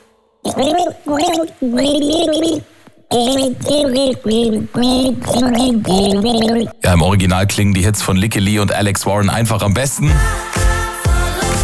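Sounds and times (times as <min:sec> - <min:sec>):
person gargling a song melody: 0:00.4 - 0:06.8
speech: 0:00.5 - 0:10.6.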